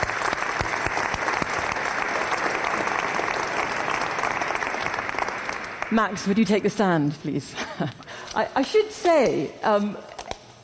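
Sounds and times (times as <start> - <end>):
audience applause: 0.0 - 6.4
speech: 5.9 - 10.1.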